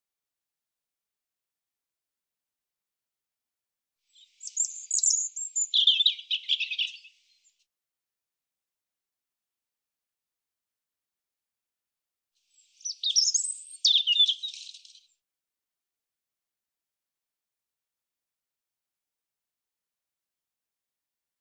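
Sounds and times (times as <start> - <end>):
European robin singing: 4.2 - 7.6, 12.5 - 15.2.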